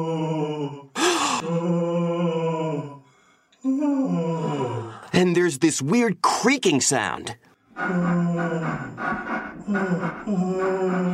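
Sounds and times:
eerie ghostly moaning: 0.0s - 5.1s, 7.8s - 11.1s
speech: 5.2s - 8.9s, 9.7s - 11.1s.

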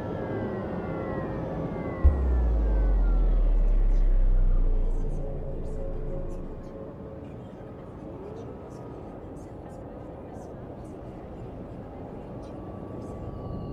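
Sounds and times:
futuristic city low traffic-like hum: 0.2s - 7.7s
rising whoosh: 2.0s - 6.8s
drifting tones: 2.0s - 7.0s
deep thump: 2.1s - 6.7s.

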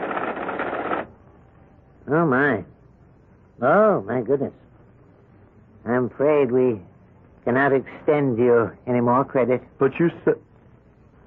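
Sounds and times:
computer typewriter printing out: 0.0s - 1.1s
speech: 2.1s - 2.7s, 3.6s - 4.6s, 5.8s - 10.5s.

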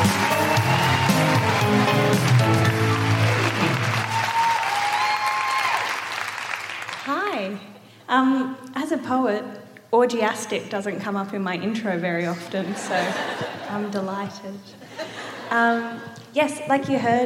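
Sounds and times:
audience at a live show in Sydney applauding poet Jazz Money: 0.0s - 7.2s
speech: 8.2s - 17.2s
laughter: 12.6s - 14.0s.

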